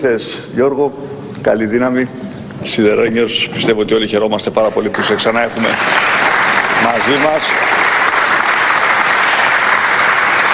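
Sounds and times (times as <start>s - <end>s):
speech: 0.0s - 6.2s, 6.9s - 7.8s
parliament applause welcoming a member: 4.9s - 10.5s.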